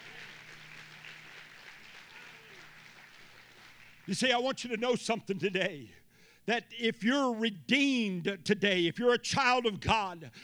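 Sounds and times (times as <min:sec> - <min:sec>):
audience clapping hands in praise: 0:00.0 - 0:05.0
speech: 0:04.1 - 0:10.4.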